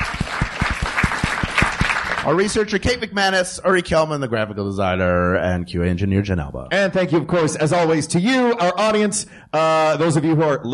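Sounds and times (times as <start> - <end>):
live audience round of applause: 0.0 - 2.5
speech: 2.3 - 10.7.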